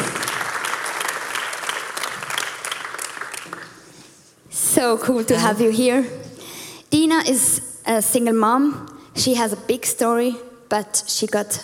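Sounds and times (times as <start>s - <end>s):
audience applause welcoming a woman onto a stage: 0.0s - 3.8s
speech: 4.8s - 6.2s, 7.1s - 11.6s.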